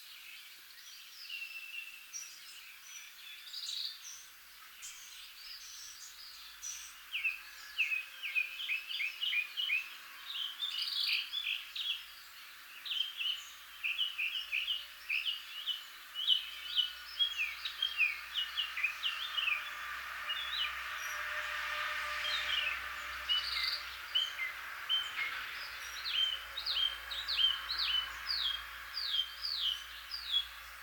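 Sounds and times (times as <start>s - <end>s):
Northern mockingbird song: 4.8s - 30.8s.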